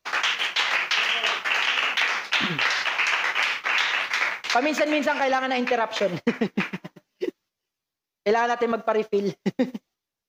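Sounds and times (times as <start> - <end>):
audience clapping to praise the Lord during a church service: 0.0 - 6.8
speech: 2.4 - 2.7, 4.5 - 6.8, 8.2 - 9.8.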